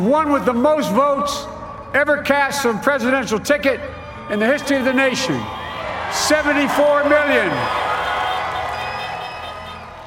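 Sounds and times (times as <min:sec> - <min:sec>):
speech: 0:00.0 - 0:07.8
large crowd cheering at election rally: 0:04.2 - 0:10.0.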